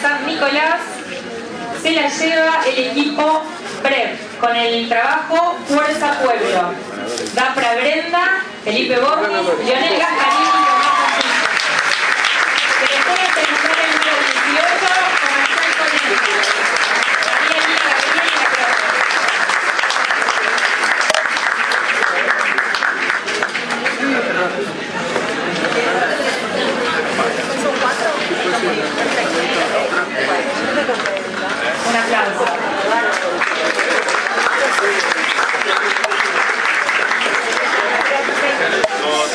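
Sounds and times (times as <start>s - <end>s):
crowd chatter and cheering: 0.0s - 39.3s
speech: 1.8s - 10.6s
audience applause: 9.8s - 24.4s, 32.7s - 39.3s.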